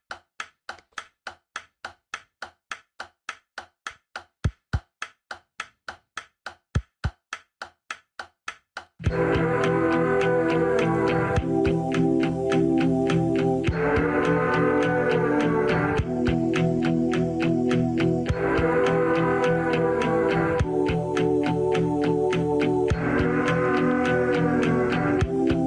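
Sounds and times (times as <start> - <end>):
dry tapping pulse: 9.0 - 25.6
loud layered music: 9.1 - 25.6.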